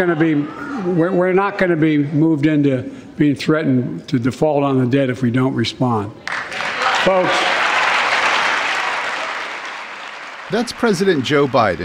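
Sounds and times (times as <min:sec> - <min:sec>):
crowd jeering in a chamber: 0:00.0 - 0:01.3, 0:06.6 - 0:11.8
speech: 0:00.0 - 0:06.3, 0:07.0 - 0:07.5, 0:10.5 - 0:11.8
crowd applauding in a chamber: 0:06.2 - 0:11.8.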